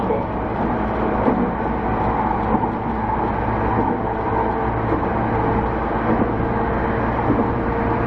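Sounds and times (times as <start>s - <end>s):
JR E231 series train motor droning on the Narita Line: 0.2s - 8.0s.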